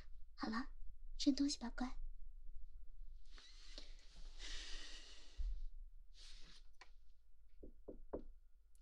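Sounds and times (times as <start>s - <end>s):
speech: 0.4s - 2.0s
knocking on a door: 7.6s - 8.4s.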